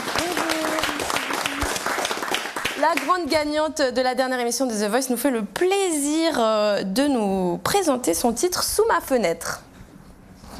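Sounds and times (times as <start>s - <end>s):
audience applause: 0.0s - 3.2s
speech: 2.8s - 9.7s.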